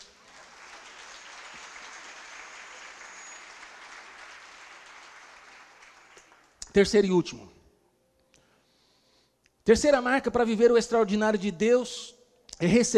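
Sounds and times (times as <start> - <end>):
audience applause: 0.0 - 6.5
speech: 6.8 - 7.5, 9.7 - 12.9.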